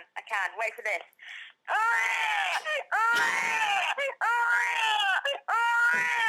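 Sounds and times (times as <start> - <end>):
speech: 0.2 - 6.2
person imitating a crying baby: 1.7 - 6.2.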